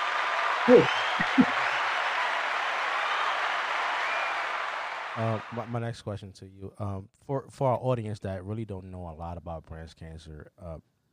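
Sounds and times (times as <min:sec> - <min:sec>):
applause: 0:00.0 - 0:05.8
speech: 0:00.7 - 0:01.6, 0:05.2 - 0:10.9.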